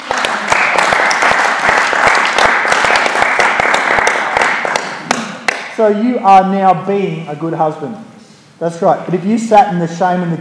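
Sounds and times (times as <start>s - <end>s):
audience applause: 0.0s - 5.2s
speech: 5.8s - 10.3s.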